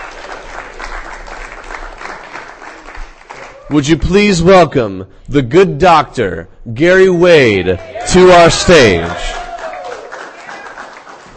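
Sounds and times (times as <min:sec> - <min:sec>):
audience applause after a reading: 0:00.0 - 0:03.8, 0:07.9 - 0:11.3
speech: 0:03.7 - 0:09.4.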